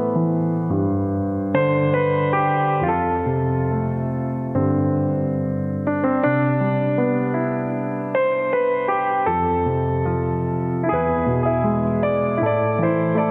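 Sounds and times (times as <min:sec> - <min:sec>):
piano: 0:00.0 - 0:13.2.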